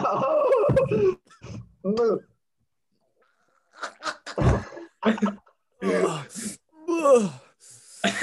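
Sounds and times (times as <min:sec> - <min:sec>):
several people groaning in disgust after drinking wine: 0:00.0 - 0:02.3, 0:05.8 - 0:08.1.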